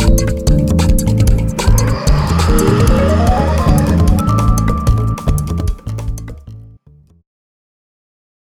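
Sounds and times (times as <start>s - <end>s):
pop music: 0.0s - 5.5s.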